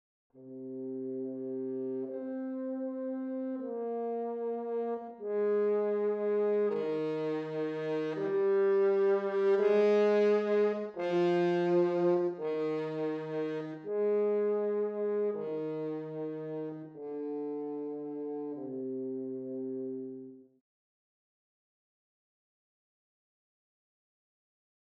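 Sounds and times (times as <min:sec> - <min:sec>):
horn: 0:00.4 - 0:20.5.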